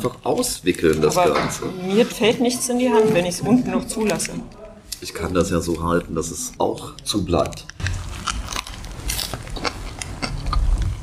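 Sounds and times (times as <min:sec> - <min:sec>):
speech: 0:00.0 - 0:07.7
person biting into and chewing fresh wholegrain bread: 0:07.3 - 0:11.0.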